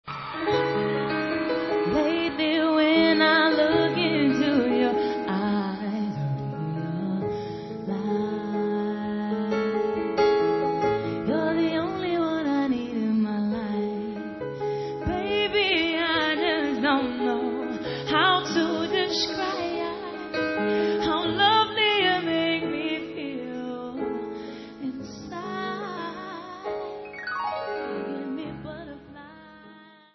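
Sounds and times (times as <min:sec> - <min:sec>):
unplugged acoustic music: 0:00.0 - 0:30.1.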